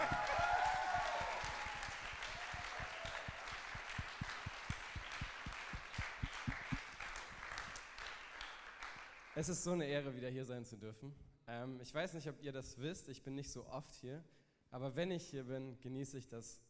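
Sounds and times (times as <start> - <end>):
whooping and cheering: 0.0 - 6.8
crowd applause: 0.0 - 9.4
rhythmic clapping: 0.0 - 9.6
speech: 9.4 - 16.6.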